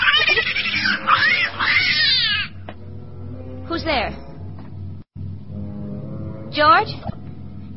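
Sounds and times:
cat yowling: 0.0 - 2.6
speech: 3.8 - 4.3, 6.6 - 7.1.

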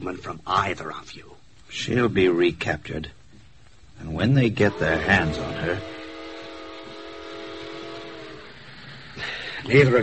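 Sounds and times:
speech: 0.0 - 3.2, 4.0 - 6.0, 9.2 - 10.0
train roaring past through a station: 4.3 - 10.0
long sustained train whistle: 4.6 - 8.7.

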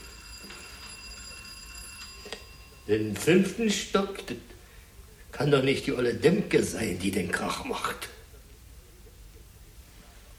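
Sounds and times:
doorbell ringing: 0.0 - 4.3
speech: 2.9 - 4.5, 5.4 - 8.2.

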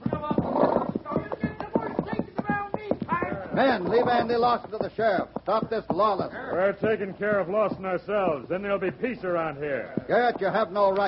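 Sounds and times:
horse hooves clopping through a crowd: 0.0 - 11.0
speech: 3.6 - 11.0.

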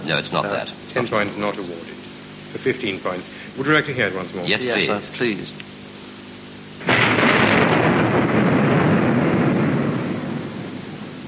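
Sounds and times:
speech: 0.1 - 5.6
clap of thunder rumbling: 6.8 - 11.2.

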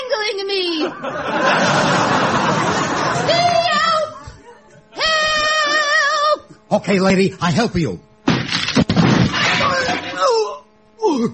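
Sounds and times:
speech: 0.4 - 1.6, 6.7 - 8.1
laughter: 0.7 - 6.0
camera smashed over a man's head: 8.2 - 10.2
clattering crash: 8.3 - 10.2.

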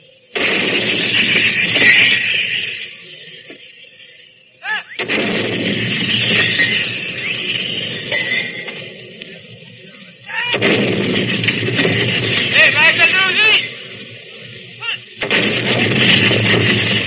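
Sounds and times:
75-millimeter field gun blasts fired by a British gun crew: 0.3 - 3.8, 4.9 - 17.0.

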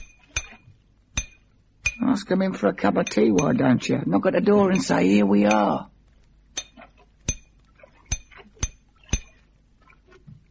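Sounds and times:
metal struck against metal knocking a shackle loose: 0.0 - 2.0, 3.0 - 3.6, 4.6 - 5.8, 6.6 - 7.5, 8.1 - 9.4
speech: 2.1 - 5.9.

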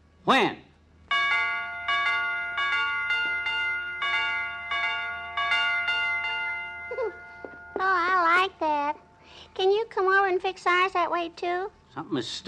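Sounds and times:
speech: 0.3 - 0.6, 10.4 - 12.4
doorbell chime ringing: 1.1 - 8.5.

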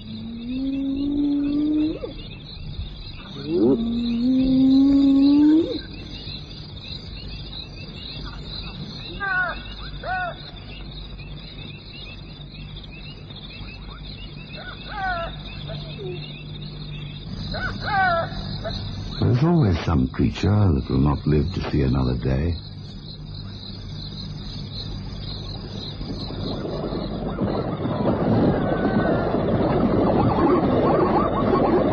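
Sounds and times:
hyenas and jackals calling in a mournful chorus: 0.0 - 2.4, 3.1 - 6.4, 8.1 - 10.8, 13.6 - 22.6, 25.4 - 31.9
low rumbling background: 0.0 - 31.9
speech: 20.2 - 22.7.

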